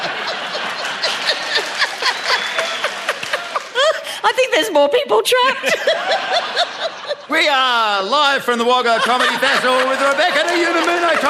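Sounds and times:
audience applause: 0.0 - 4.2, 9.0 - 11.2
laughter: 0.0 - 4.6, 5.3 - 11.2
speech: 4.3 - 11.2.

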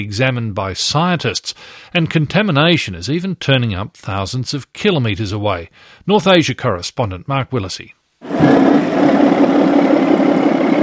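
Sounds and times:
speech: 0.0 - 9.3
Fukushima fisherman's fishing boat engine leaving port: 8.2 - 10.8.

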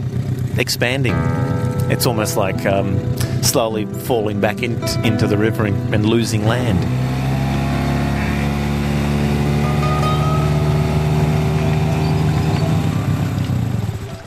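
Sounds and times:
speech: 0.6 - 7.2
boat outboard motor droning on a river: 5.4 - 14.2.

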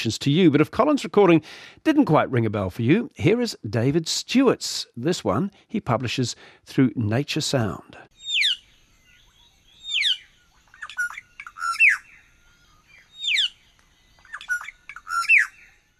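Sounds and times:
speech: 0.0 - 8.1
Australasian figbird calls: 8.1 - 15.9.

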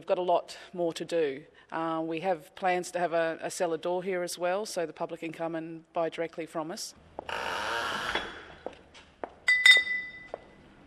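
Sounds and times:
speech: 0.0 - 7.5
glass bottles clinking on a bottling line: 9.5 - 10.4.

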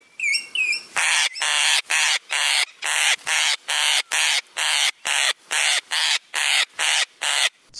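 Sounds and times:
fox parrot whistled chirps: 0.0 - 0.9
fox parrot squawking: 0.2 - 7.6.

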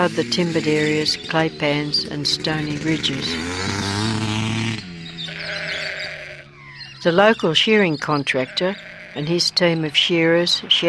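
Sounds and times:
speech: 0.0 - 4.0, 7.0 - 10.8
sheep (wethers) bleating: 5.2 - 6.6, 8.2 - 9.7.

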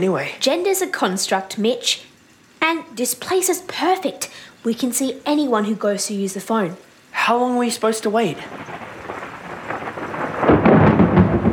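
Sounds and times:
speech: 0.0 - 8.9
heavy pouring rain: 0.0 - 11.5
thunder rumbling: 8.3 - 11.5.

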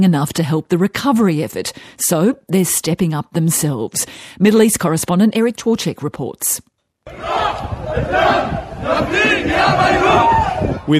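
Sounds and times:
speech: 0.0 - 10.9
marching crowd chanting in unison: 7.1 - 10.8.

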